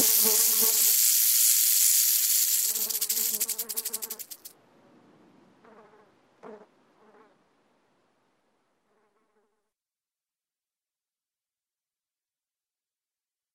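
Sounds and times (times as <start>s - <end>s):
snake hissing: 0.0s - 4.5s.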